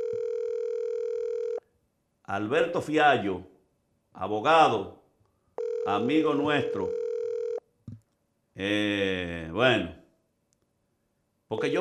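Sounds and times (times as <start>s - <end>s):
telephone dial tone while placing a call to a lawyer: 0.0s - 1.6s, 5.6s - 7.6s
speech: 2.3s - 3.5s, 4.2s - 5.0s, 5.8s - 7.0s, 8.6s - 10.0s, 11.5s - 11.7s.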